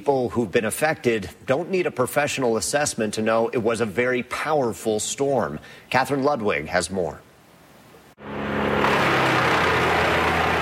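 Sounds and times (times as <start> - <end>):
speech: 0.0 - 7.3
wood chippers running east of Rocky Mountain House: 8.8 - 10.5.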